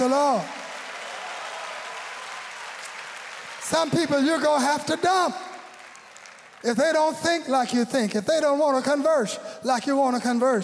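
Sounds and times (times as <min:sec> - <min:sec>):
audience clapping hands: 0:00.0 - 0:07.2
speech: 0:00.1 - 0:00.6, 0:03.7 - 0:05.5, 0:06.6 - 0:10.6.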